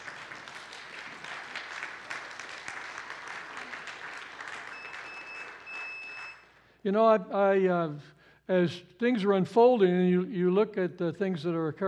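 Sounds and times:
audience applause: 0.0s - 6.4s
speech: 6.8s - 11.8s.

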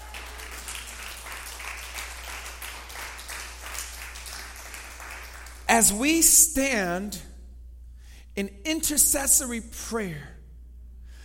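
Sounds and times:
crowd clapping: 0.0s - 6.0s
low steady hum: 0.0s - 11.2s
speech: 5.7s - 7.3s, 8.4s - 10.3s.

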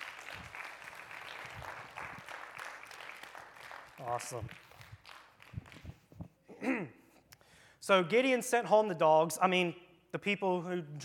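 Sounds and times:
audience applause: 0.0s - 6.0s
speech: 4.0s - 4.7s, 6.6s - 7.0s, 7.9s - 11.0s.

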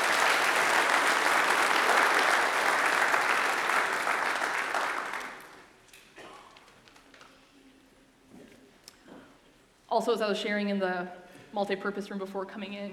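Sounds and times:
round of applause: 0.0s - 5.8s
speech: 10.0s - 12.9s.

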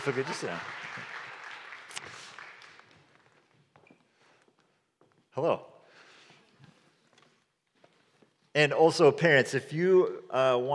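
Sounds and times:
speech: 0.0s - 0.8s, 5.4s - 5.7s, 8.6s - 10.7s
audience applause for children: 0.0s - 3.4s.

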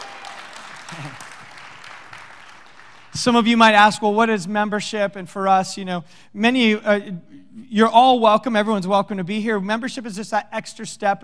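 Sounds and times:
church congregation clapping to welcome new members: 0.0s - 3.7s
speech: 1.0s - 1.3s, 3.2s - 11.2s.

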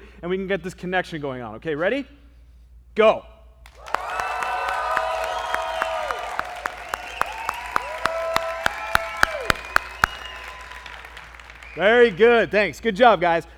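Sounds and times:
speech: 0.2s - 2.2s, 3.0s - 3.3s, 11.8s - 13.5s
large crowd clapping, cheering and yelling: 3.7s - 12.7s.

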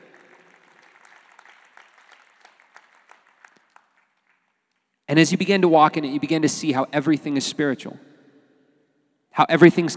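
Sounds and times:
audience clapping: 0.0s - 5.0s
speech: 5.1s - 8.1s, 9.4s - 9.9s.

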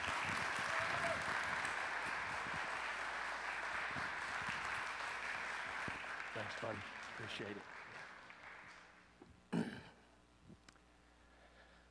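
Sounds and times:
church congregation applauding to welcome a guest speaker: 0.0s - 9.1s
speech: 6.4s - 7.8s.

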